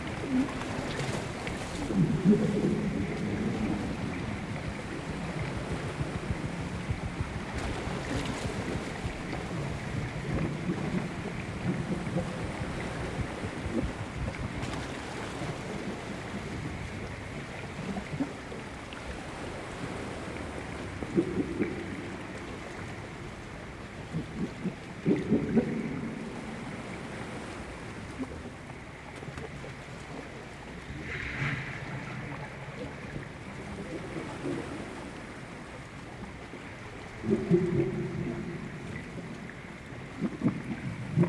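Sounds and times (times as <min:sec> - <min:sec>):
underwater murmur of water at anchor in the Outer Hebrides: 0:00.0 - 0:41.2.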